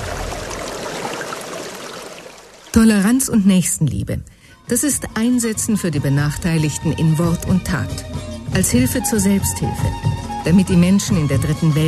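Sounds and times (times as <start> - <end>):
rushing water from a pumping station starting up: 0.0 - 3.3
speech: 2.8 - 11.8.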